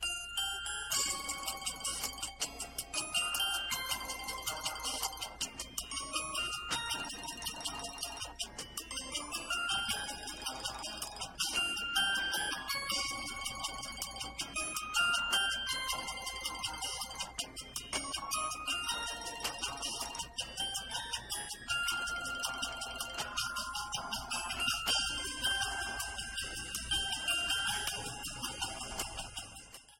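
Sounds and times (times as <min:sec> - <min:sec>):
ringtone: 0:00.0 - 0:29.9.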